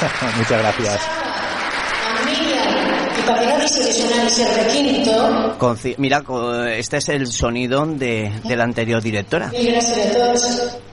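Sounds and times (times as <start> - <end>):
laughter: 0.0 - 0.8
speech: 0.0 - 1.6, 2.3 - 10.9
audience applause: 0.0 - 2.3.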